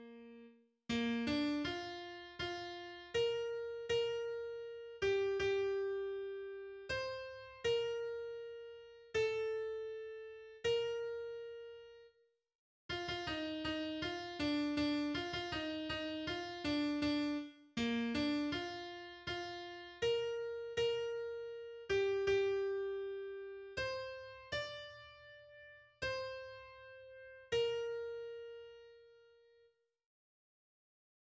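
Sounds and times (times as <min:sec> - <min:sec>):
piano: 0:00.0 - 0:12.1, 0:12.9 - 0:29.7.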